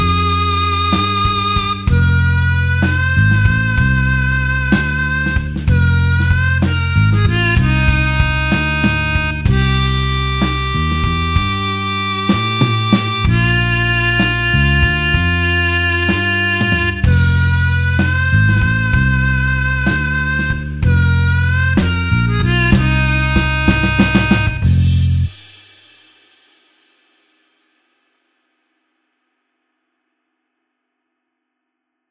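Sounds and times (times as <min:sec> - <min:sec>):
slow blues harp in F: 0:00.0 - 0:25.3.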